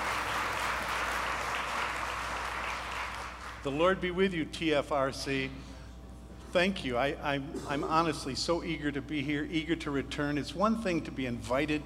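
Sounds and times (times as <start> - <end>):
audience applause welcoming a guest preacher: 0.0 - 3.6
speech: 3.6 - 5.7, 6.5 - 11.8.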